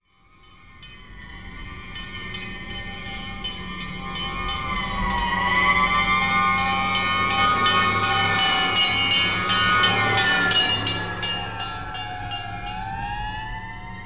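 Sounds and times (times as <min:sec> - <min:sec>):
fire truck: 0:00.0 - 0:14.0.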